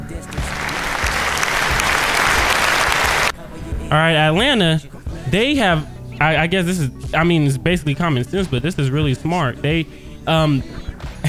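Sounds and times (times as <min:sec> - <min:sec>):
audience applause: 0:00.0 - 0:03.3
speech: 0:03.9 - 0:10.8.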